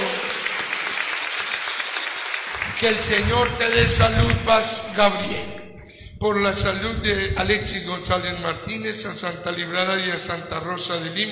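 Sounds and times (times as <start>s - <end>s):
church congregation applause: 0.0s - 5.0s
speech: 2.8s - 5.6s, 6.2s - 11.3s.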